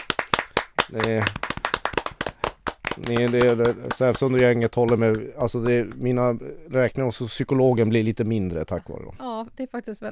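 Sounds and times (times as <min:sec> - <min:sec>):
spontaneous applause: 0:00.0 - 0:06.1
speech: 0:00.9 - 0:01.4, 0:03.0 - 0:10.1.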